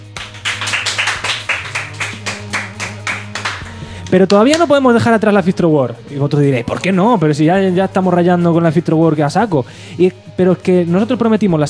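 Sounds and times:
rhythmic clapping for a reporter: 0.0 - 4.8
low sustained musical tone: 0.4 - 4.3
speech: 4.1 - 11.6.

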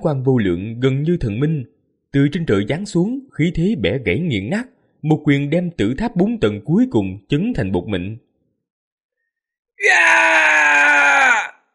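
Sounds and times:
speech: 0.0 - 8.2, 9.8 - 10.8
man screaming in agony: 9.8 - 11.7.

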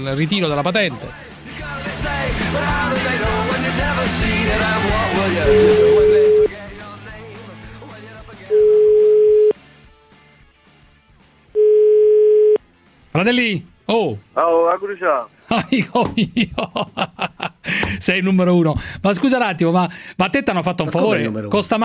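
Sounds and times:
speech: 0.0 - 6.1, 13.2 - 21.8
electronic telephone dial and ringing tone: 5.5 - 6.5, 8.5 - 9.6, 11.6 - 12.6
laughter: 15.5 - 18.0.

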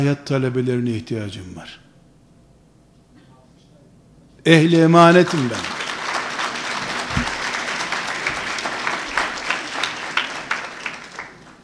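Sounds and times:
speech: 0.0 - 1.8, 4.4 - 5.8
crowd applauding: 5.0 - 11.6.

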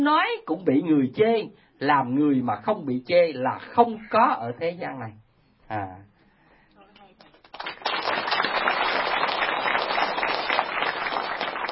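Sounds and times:
speech: 0.0 - 6.1
audience clapping at a Buddhist dharma talk: 7.2 - 11.6.

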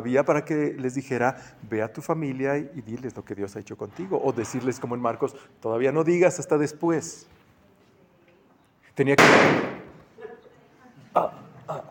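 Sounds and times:
speech: 0.0 - 7.4, 9.0 - 9.7
balloon popping: 9.2 - 10.1.

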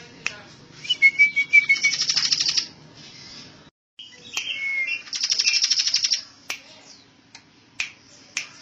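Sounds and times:
bird singing trill, chirps and whistles: 1.6 - 7.0.

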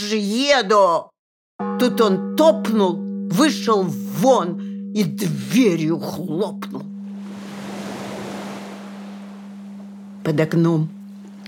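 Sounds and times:
speech: 0.0 - 1.1, 1.8 - 6.9, 10.2 - 11.0
gentle sea waves: 6.9 - 11.4.

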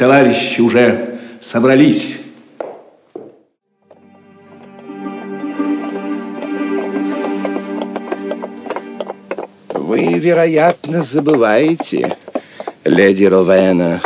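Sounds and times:
speech: 0.0 - 2.2, 10.0 - 14.0
horses stomping: 4.6 - 14.0.

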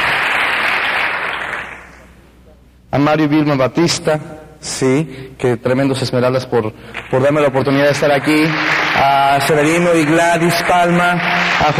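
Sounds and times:
audience applause at an event thanking sponsors and supporters: 0.0 - 2.0, 6.9 - 11.7
speech: 3.0 - 11.7.

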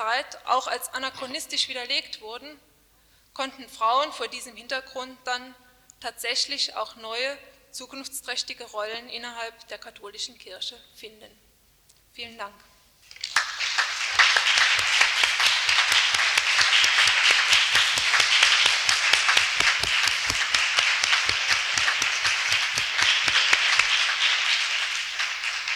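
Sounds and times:
speech: 0.1 - 2.7, 3.4 - 11.5, 12.2 - 12.7
audience applause after a lecture: 13.1 - 25.7.

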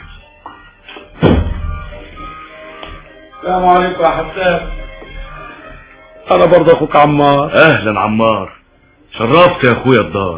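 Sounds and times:
door being opened for a visitor: 1.1 - 1.9
speech: 3.4 - 4.8, 6.3 - 10.3.

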